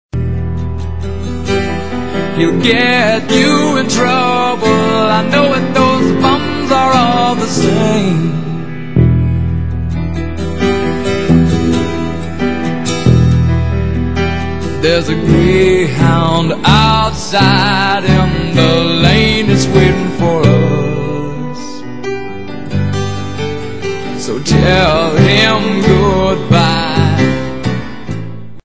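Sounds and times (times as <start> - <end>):
blues music: 0.1 - 28.6.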